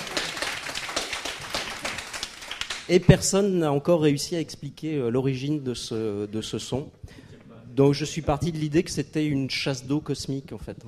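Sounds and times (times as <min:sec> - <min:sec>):
audience applause: 0:00.0 - 0:02.9
speech: 0:02.9 - 0:07.2, 0:07.8 - 0:10.8.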